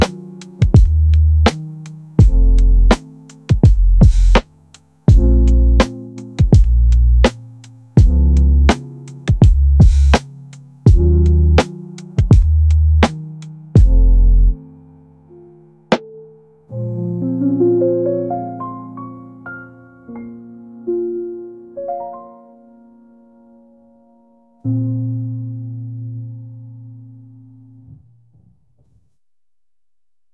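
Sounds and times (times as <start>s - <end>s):
chill lofi cafe jazz music: 0.0s - 20.5s.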